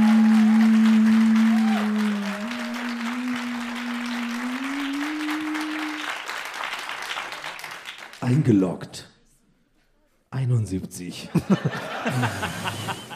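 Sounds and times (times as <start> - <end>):
applause: 0.0 - 8.7
speech: 8.3 - 9.1, 10.7 - 13.1
laughter: 11.3 - 13.1.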